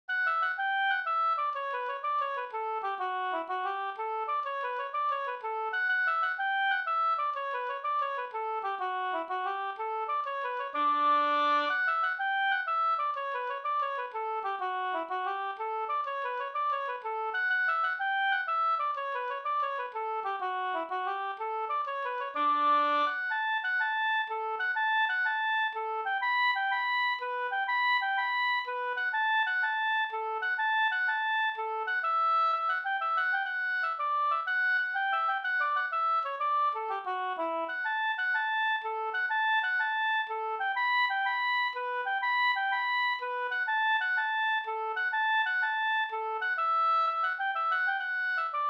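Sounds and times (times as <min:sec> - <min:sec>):
Rorospols folk dance tune: 0:00.1 - 0:48.6.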